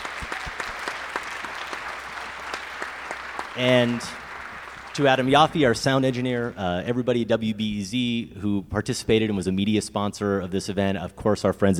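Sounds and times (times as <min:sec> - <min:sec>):
live audience round of applause: 0:00.0 - 0:06.6
speech: 0:03.6 - 0:04.2, 0:05.0 - 0:11.7.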